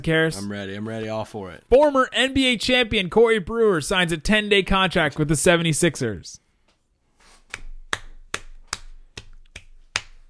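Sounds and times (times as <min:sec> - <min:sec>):
speech: 0:00.0 - 0:06.4
single hand clap: 0:07.5 - 0:10.2.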